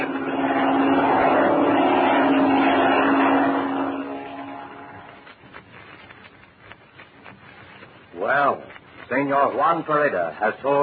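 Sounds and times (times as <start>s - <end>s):
approaching airplane engine: 0.0s - 5.2s
speech: 9.3s - 10.8s.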